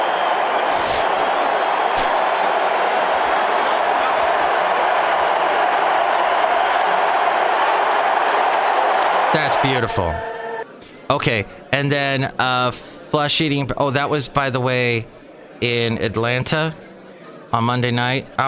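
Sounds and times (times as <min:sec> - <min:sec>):
stadium crowd cheering and booing: 0:00.0 - 0:10.8
speech: 0:09.4 - 0:10.4, 0:11.1 - 0:16.8, 0:17.5 - 0:18.4.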